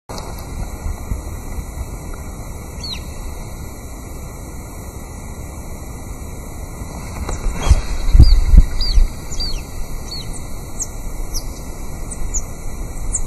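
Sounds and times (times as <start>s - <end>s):
Geositta punensis: 2.6s - 3.9s, 7.2s - 13.2s.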